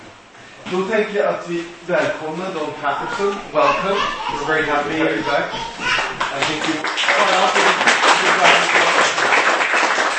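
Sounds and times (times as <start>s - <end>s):
speech: 0.7s - 8.8s
audience clapping: 5.9s - 10.1s.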